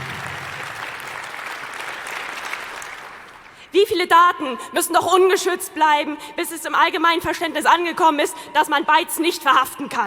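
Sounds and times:
audience applause: 0.0s - 3.6s
speech: 3.8s - 10.0s.

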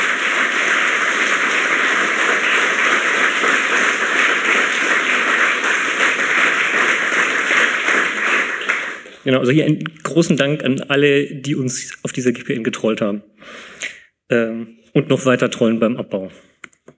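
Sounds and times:
audience applause: 0.0s - 9.3s
speech: 9.3s - 13.7s, 14.3s - 16.5s.

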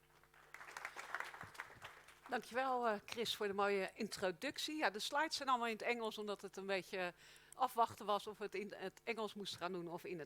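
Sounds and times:
faint audience applause welcoming a speaker to the stage at a talk: 0.2s - 2.3s
speech: 2.3s - 10.2s.

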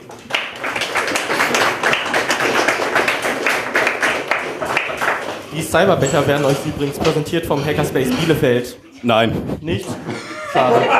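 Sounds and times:
audience applause: 0.0s - 5.5s
speech: 5.7s - 10.9s
laughter: 7.9s - 10.9s.

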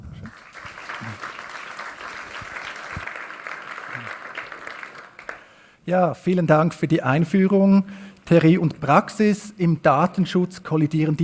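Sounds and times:
audience applause: 0.0s - 5.6s
speech: 5.9s - 11.2s.

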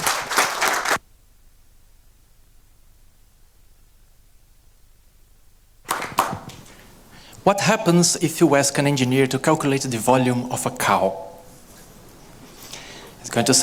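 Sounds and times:
audience applause: 0.0s - 1.0s, 5.9s - 6.9s
speech: 7.4s - 11.3s, 13.3s - 13.6s.

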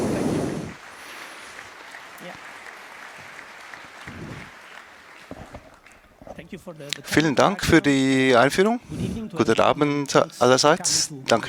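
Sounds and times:
audience applause: 0.0s - 6.2s
speech: 6.5s - 11.4s.

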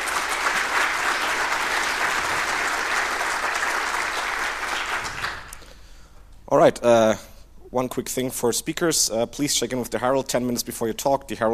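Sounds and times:
audience applause: 0.0s - 5.6s
speech: 6.6s - 11.5s.

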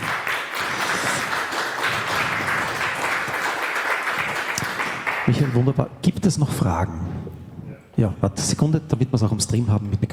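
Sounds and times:
audience applause: 0.0s - 5.7s
speech: 5.3s - 7.1s, 8.0s - 10.1s.

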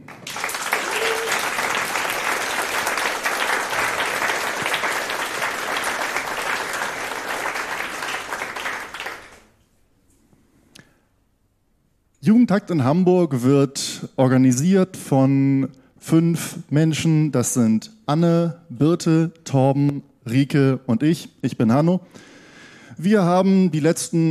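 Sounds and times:
audience applause: 0.0s - 9.5s
speech: 12.3s - 22.3s, 23.0s - 24.2s.

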